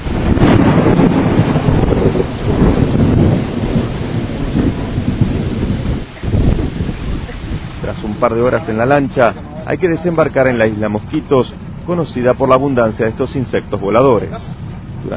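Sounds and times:
thunder during a storm: 0.0 - 9.2
speech: 8.2 - 15.1.

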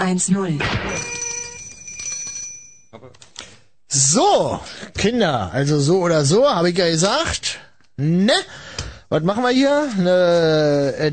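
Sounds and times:
speech: 0.0 - 1.2, 3.9 - 11.1
telephone hanging on an old oak tree in a forest ringing: 0.8 - 3.0.

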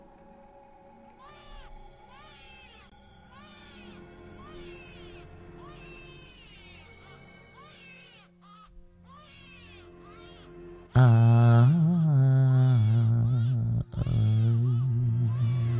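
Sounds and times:
wind howling: 0.0 - 5.4
infant crying shrilly: 1.2 - 15.7
person singing lullaby: 1.2 - 15.7.

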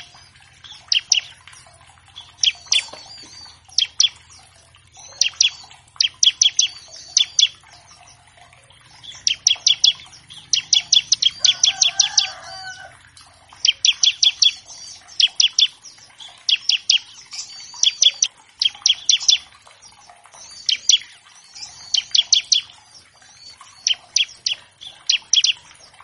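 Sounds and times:
Bar-winged Prinia singing bright high chipping notes: 0.0 - 26.0.

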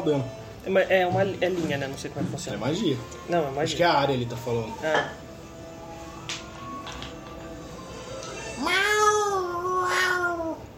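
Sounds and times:
speech: 0.0 - 5.2
cat meowing: 8.3 - 10.7.

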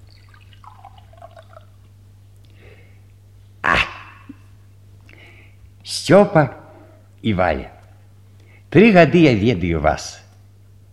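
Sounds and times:
liquid pouring into a glass: 0.0 - 1.8
low steady hum: 0.0 - 10.9
speech: 5.9 - 6.6, 7.2 - 7.8, 8.7 - 10.2.

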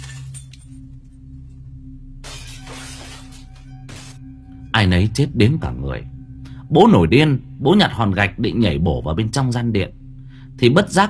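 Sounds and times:
tray of dishes kicked over, crockery smashing: 0.0 - 0.8, 2.2 - 4.2
speech: 4.8 - 10.0, 10.6 - 11.0.

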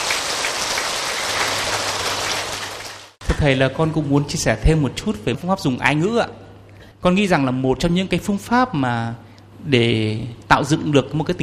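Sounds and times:
loud audience applause: 0.0 - 3.2
speech: 3.4 - 6.4, 7.0 - 11.4.

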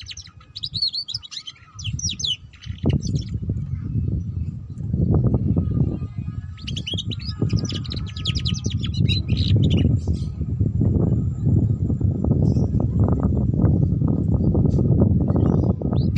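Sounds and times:
canary trilling: 0.0 - 3.4, 6.5 - 10.0, 16.0 - 16.1
heavy low rumbling noise: 1.8 - 16.1.

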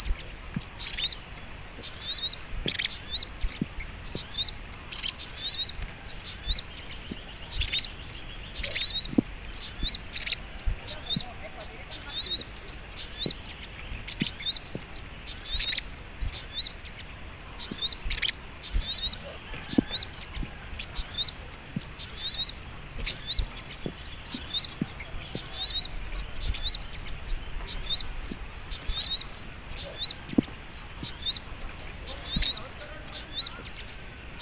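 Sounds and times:
little spiderhunter song: 0.0 - 34.4.

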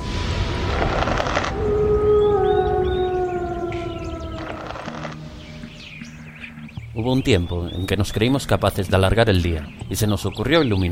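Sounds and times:
wolf howling at night: 0.8 - 6.3
speech: 7.0 - 10.9.

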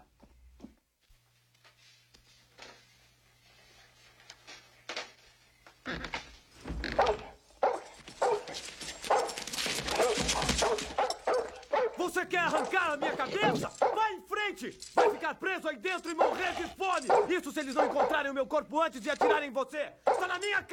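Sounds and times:
scuffling noises: 0.1 - 20.7
dog barking and whimpering: 6.9 - 14.1, 14.9 - 15.3, 16.2 - 18.3, 19.2 - 20.4
speech: 12.3 - 20.7.

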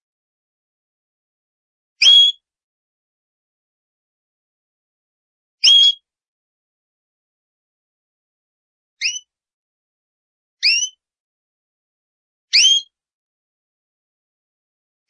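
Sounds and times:
champion canary song: 2.0 - 2.4, 5.6 - 6.1, 9.0 - 9.4, 10.6 - 11.0, 12.5 - 13.0.

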